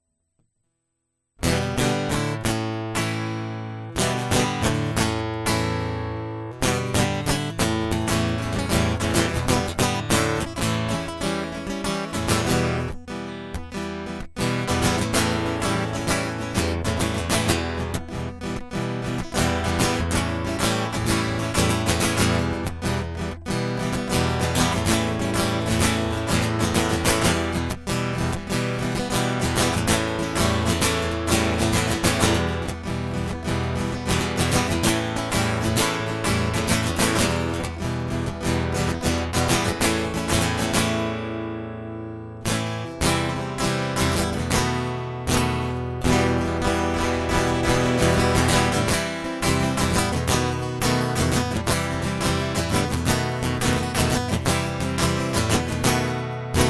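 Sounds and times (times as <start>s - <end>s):
guitar loop: 1.4s - 56.6s.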